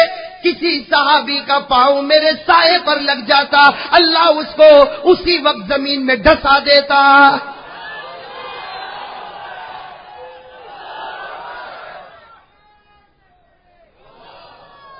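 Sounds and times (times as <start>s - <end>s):
speech: 0.6s - 7.5s
crowd at a religious sermon chanting a slogan: 7.6s - 14.9s.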